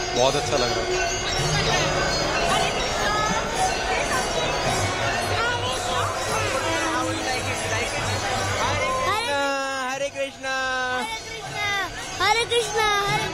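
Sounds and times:
children calling: 0.0s - 13.3s
crowd chatter at a busy temple: 0.0s - 13.3s
speech: 0.2s - 1.9s.

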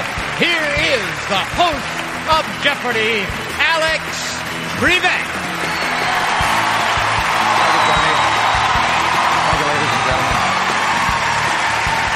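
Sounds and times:
large audience applause: 0.0s - 12.1s
speech: 0.4s - 5.9s
scattered whoops and cheers: 5.5s - 12.1s.

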